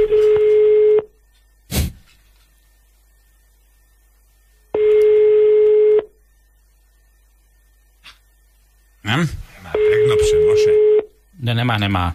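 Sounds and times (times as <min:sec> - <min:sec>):
telephone line ringing as a radio morning show phones a listener: 0:00.0 - 0:01.1, 0:04.7 - 0:06.1, 0:09.7 - 0:11.1
speech: 0:11.6 - 0:12.1.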